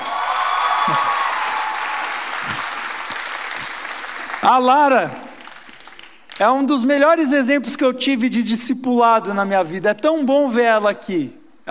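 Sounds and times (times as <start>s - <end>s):
audience applause: 0.0s - 6.2s
speech: 0.9s - 1.2s, 4.4s - 5.2s, 6.4s - 11.6s.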